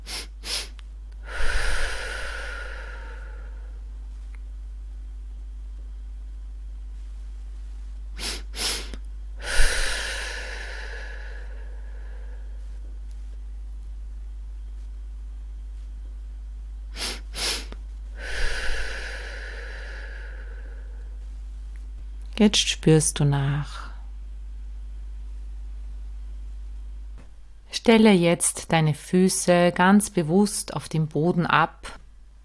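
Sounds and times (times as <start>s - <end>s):
breathing exercise with two nasal inhales and one long mouth exhale: 0.0s - 3.9s, 8.2s - 12.9s, 16.9s - 21.2s
speech: 22.4s - 23.9s, 27.9s - 32.0s.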